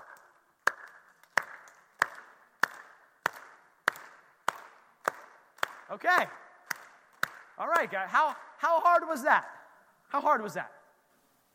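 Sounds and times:
group clapping in rhythm: 0.0s - 8.6s
speech: 5.9s - 6.4s, 7.6s - 10.8s.

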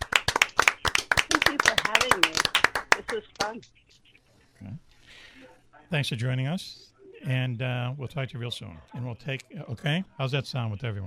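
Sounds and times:
short round of applause from a few hands: 0.0s - 3.5s
speech: 3.1s - 4.0s, 4.6s - 5.3s, 5.9s - 11.0s.

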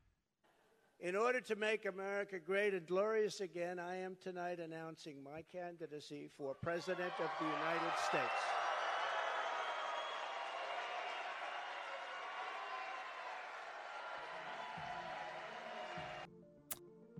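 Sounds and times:
speech: 1.0s - 8.6s
large crowd cheering and applauding: 6.8s - 16.3s.

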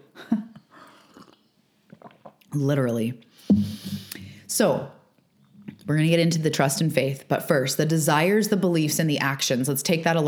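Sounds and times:
person sipping coffee: 0.9s - 2.5s, 3.4s - 4.4s
speech: 2.5s - 3.8s, 4.6s - 5.0s, 5.9s - 10.2s.

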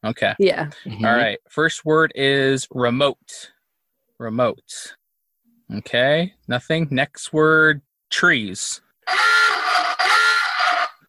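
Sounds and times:
speech: 0.0s - 3.5s, 4.2s - 5.0s, 5.7s - 9.4s
quiz buzzer: 9.1s - 11.0s.

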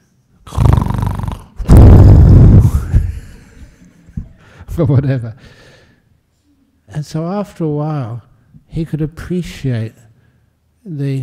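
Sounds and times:
man snoring: 0.5s - 3.0s
speech: 4.8s - 5.7s, 6.9s - 10.0s, 10.8s - 11.2s.

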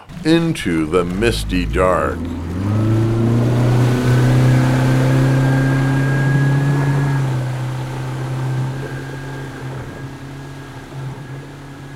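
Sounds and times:
outboard motor starting and revving away: 0.1s - 11.9s
speech: 0.2s - 2.5s.

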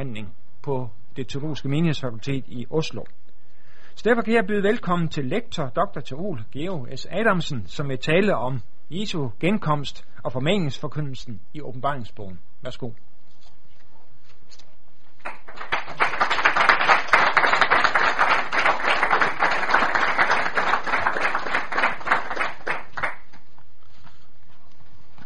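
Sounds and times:
speech: 0.0s - 3.2s, 4.0s - 13.1s
audience clapping: 15.2s - 23.5s.

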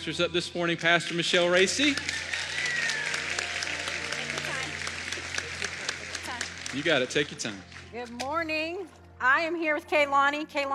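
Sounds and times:
speech: 0.0s - 2.3s, 6.8s - 10.7s
audience applauding: 1.4s - 7.9s.

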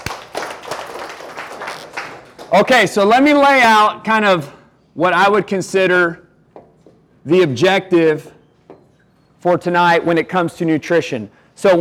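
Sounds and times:
audience applause: 0.0s - 2.7s
speech: 2.5s - 6.2s, 7.2s - 8.4s, 9.4s - 11.7s.

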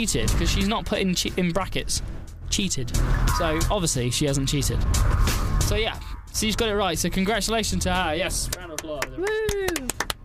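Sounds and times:
speech: 0.0s - 9.9s
applause: 8.5s - 10.2s.

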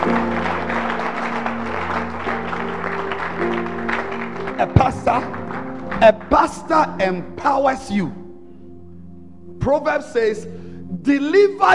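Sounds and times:
audience clapping hands: 0.0s - 7.0s
speech: 6.0s - 8.2s, 9.6s - 11.7s.

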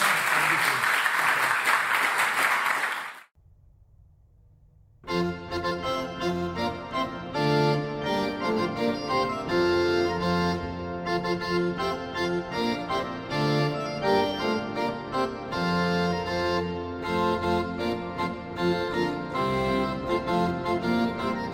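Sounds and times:
crowd clapping: 0.0s - 3.3s
music: 5.0s - 21.5s.

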